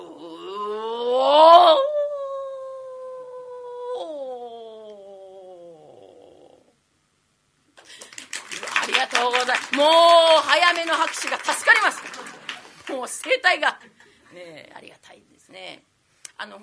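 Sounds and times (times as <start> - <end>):
person imitating a wild wolf howl: 0.0 - 6.7
speech: 9.7 - 12.0, 13.0 - 16.6.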